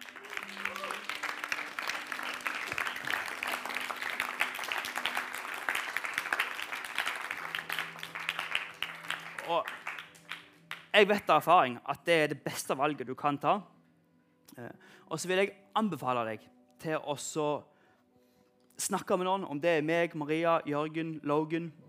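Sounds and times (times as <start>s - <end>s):
crowd applause: 0.0s - 10.9s
speech: 11.0s - 13.7s, 14.6s - 17.7s, 18.8s - 21.8s.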